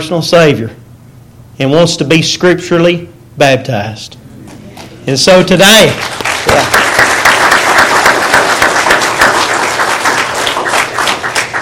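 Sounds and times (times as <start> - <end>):
speech: 0.0 - 0.8, 1.6 - 4.2, 5.0 - 6.8
audience applause: 5.7 - 11.5.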